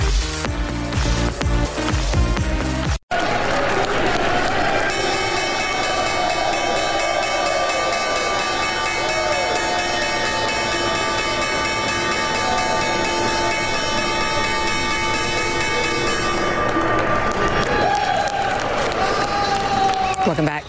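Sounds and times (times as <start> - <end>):
applause: 0.2 - 9.8, 16.1 - 20.6
stock exchange opening bell in New York: 4.9 - 17.0.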